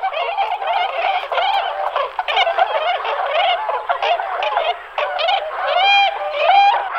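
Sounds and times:
tundra swans Cygnus columbianus calling with nasal honks: 0.0s - 6.9s.

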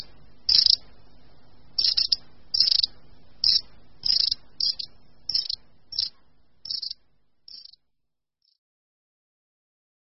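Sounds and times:
long-tailed tit calls: 0.0s - 1.0s, 1.7s - 7.8s.

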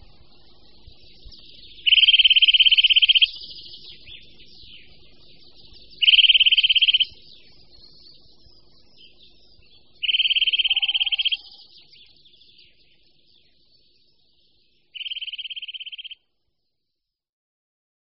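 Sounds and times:
Eurasian nuthatch trilling: 1.6s - 5.0s, 5.9s - 7.3s, 9.9s - 12.2s, 15.0s - 16.2s.

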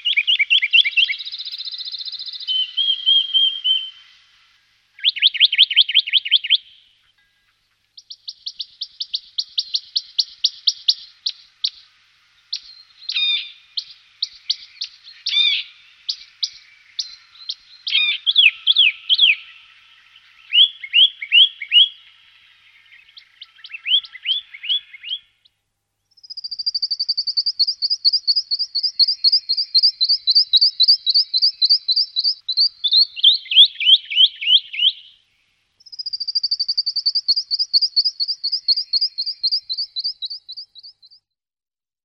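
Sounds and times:
western rock nuthatch calls: 0.0s - 25.2s, 26.2s - 35.2s, 35.8s - 41.2s.

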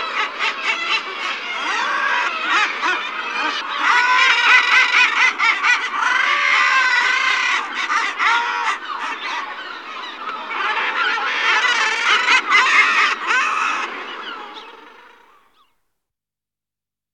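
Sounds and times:
common murres giving harsh growling calls: 0.0s - 15.7s.

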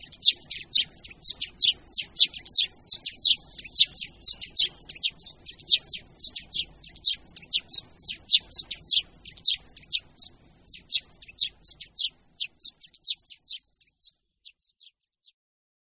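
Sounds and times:
Eurasian tree sparrow chattering: 0.0s - 14.9s.

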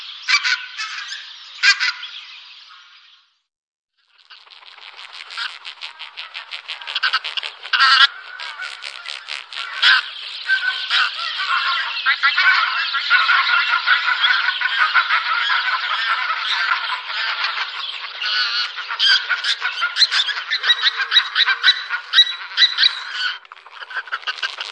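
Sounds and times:
pink-footed goose calls, double and triple honks: 5.2s - 24.7s.

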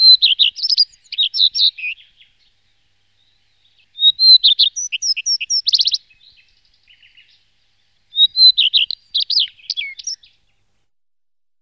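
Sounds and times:
common redstart song with twittering: 0.0s - 10.7s.

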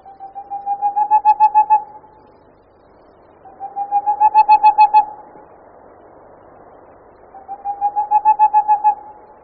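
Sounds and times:
boreal owl hooting song: 0.0s - 2.2s, 3.4s - 5.2s, 7.3s - 9.3s.

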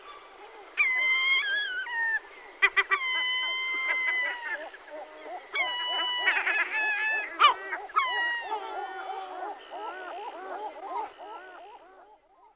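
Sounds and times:
gulls mewing and wailing: 0.0s - 12.5s.

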